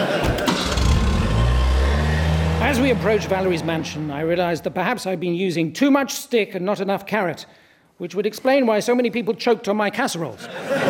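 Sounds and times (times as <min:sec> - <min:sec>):
car engine starting and running: 0:00.0 - 0:05.0
speech: 0:02.7 - 0:10.8
laughter: 0:10.4 - 0:10.8.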